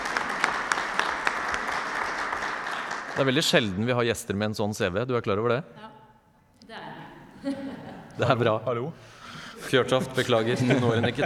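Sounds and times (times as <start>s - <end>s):
audience applause: 0.0s - 3.7s
speech: 3.2s - 5.9s, 7.4s - 11.2s
laughter: 7.3s - 11.2s.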